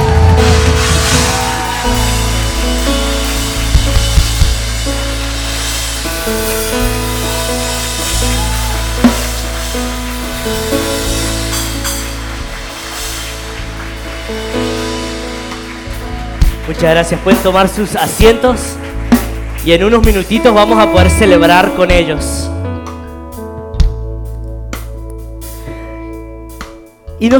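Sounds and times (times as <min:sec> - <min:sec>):
audience applauding loudly: 0:00.0 - 0:21.7
sustained shifting chords from a keyboard or organ: 0:00.0 - 0:27.3
speech: 0:16.8 - 0:18.8, 0:19.6 - 0:22.4, 0:27.2 - 0:27.3.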